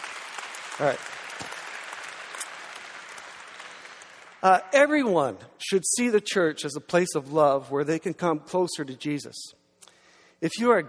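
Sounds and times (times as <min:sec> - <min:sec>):
audience applause: 0:00.0 - 0:04.4
speech: 0:00.8 - 0:01.2, 0:04.4 - 0:09.6, 0:10.4 - 0:10.8.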